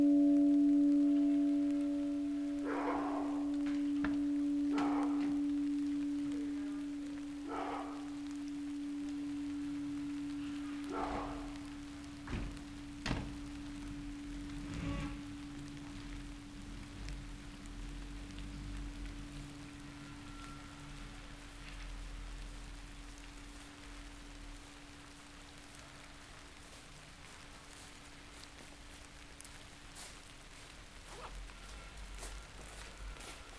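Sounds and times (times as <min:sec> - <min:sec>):
bell ringing: 0:00.0 - 0:17.3.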